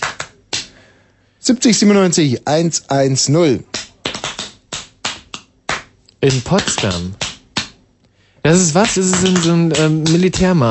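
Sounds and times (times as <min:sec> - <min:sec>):
speech: 0:01.4 - 0:03.8, 0:06.2 - 0:07.2, 0:08.4 - 0:10.7
hands drumming on a bare belly: 0:03.7 - 0:07.8, 0:08.6 - 0:10.7.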